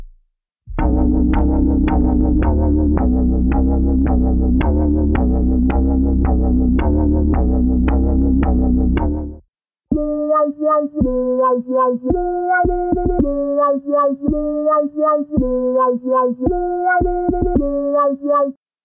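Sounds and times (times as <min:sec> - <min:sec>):
synthesizer patches with delay effect: 0:00.7 - 0:09.4, 0:09.9 - 0:18.5.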